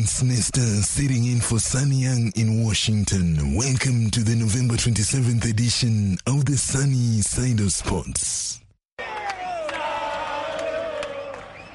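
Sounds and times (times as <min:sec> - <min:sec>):
speech: 0:00.0 - 0:08.6
Argentine football fans chanting in unison: 0:09.0 - 0:11.7.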